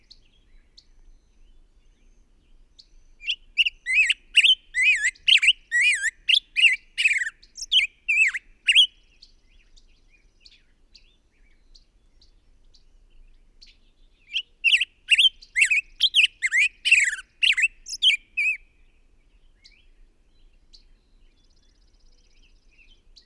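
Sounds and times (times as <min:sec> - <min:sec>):
bird harsh squawks: 0:03.6 - 0:08.9, 0:14.7 - 0:18.6.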